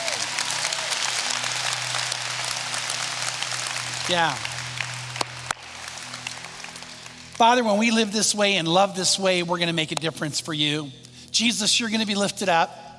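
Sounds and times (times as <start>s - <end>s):
audience clapping: 0.0s - 8.7s
speech: 4.1s - 4.5s, 7.4s - 12.9s.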